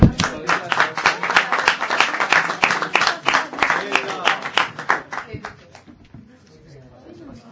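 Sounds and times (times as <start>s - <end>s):
audience applause: 0.0s - 5.5s.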